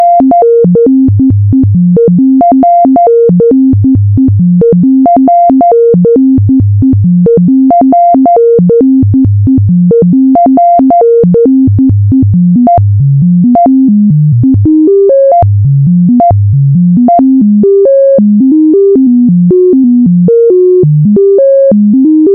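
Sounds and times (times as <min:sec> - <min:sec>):
self-resonating synth melody: 0:00.0 - 0:22.3.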